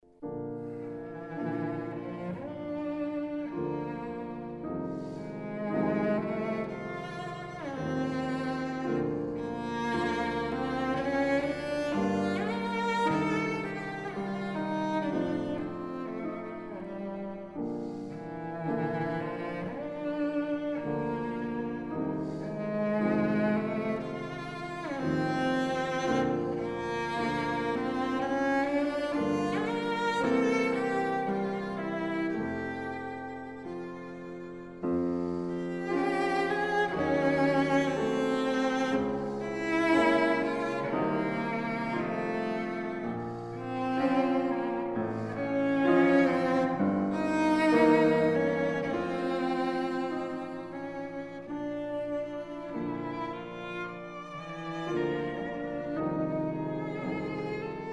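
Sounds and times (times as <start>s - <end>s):
piano trio: 0.0s - 57.9s.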